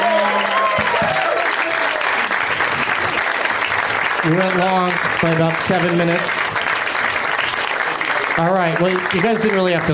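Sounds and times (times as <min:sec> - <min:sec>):
audience clapping at a live show: 0:00.0 - 0:09.9
speech: 0:04.2 - 0:06.6, 0:08.4 - 0:09.9.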